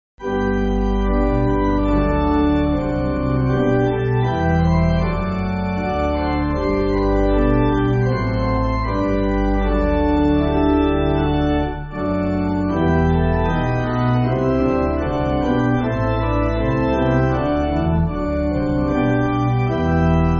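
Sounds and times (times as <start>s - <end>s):
pipe organ church music: 0.2s - 20.3s.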